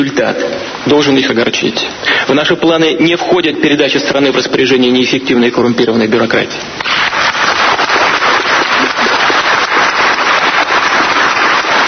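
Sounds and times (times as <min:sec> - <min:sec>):
speech: 0:00.0 - 0:07.3
prolonged stormy applause: 0:06.8 - 0:11.8.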